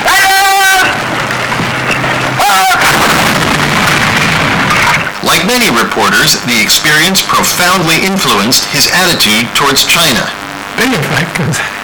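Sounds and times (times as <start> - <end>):
roaring noise: 0.0 - 11.8
artillery battery firing north of Suwon, Korea: 1.0 - 5.2
speech: 5.6 - 11.8.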